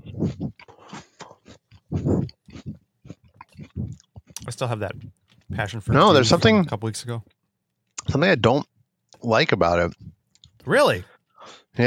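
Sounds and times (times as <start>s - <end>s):
crunchy chewing of a summer-flavored cereal: 0.0s - 5.7s
speech: 0.2s - 0.6s, 4.6s - 7.3s, 8.1s - 10.0s, 10.6s - 11.1s.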